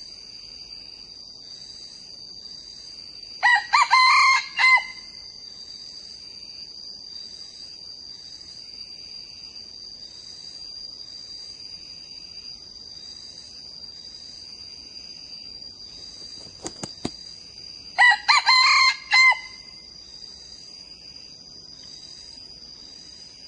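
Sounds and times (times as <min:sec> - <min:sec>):
young male red junglefowl crowing: 0:03.4 - 0:05.2, 0:18.0 - 0:19.8.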